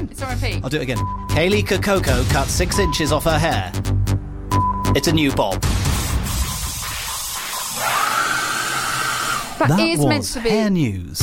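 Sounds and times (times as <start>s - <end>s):
speech: 0.2s - 4.0s, 4.9s - 5.8s, 9.6s - 11.2s
hairdryer sound effect: 7.5s - 9.6s.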